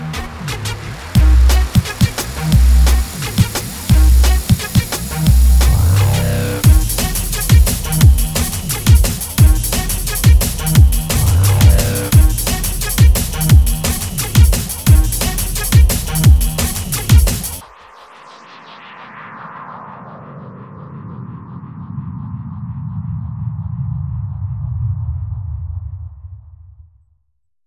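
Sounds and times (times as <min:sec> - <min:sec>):
drum and bass music: 0:00.0 - 0:17.8.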